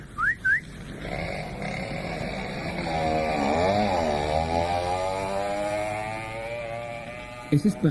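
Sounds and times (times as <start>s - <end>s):
rising whistles: 0.0s - 0.7s
moped engine revving as it rides off: 0.4s - 7.8s.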